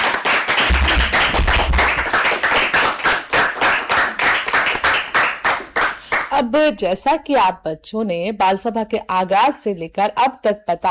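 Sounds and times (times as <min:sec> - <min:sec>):
children clapping: 0:00.0 - 0:06.4
speech: 0:06.4 - 0:10.8.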